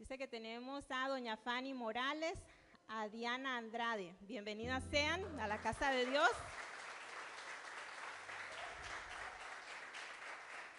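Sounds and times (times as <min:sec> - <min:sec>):
speech: 0:00.0 - 0:06.6
audience applause welcoming visitors: 0:05.4 - 0:10.7.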